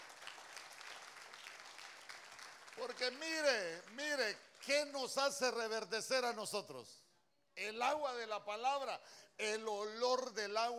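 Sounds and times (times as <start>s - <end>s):
crowd audience clapping hands: 0.0s - 5.0s
speech: 2.8s - 7.0s, 7.6s - 10.7s.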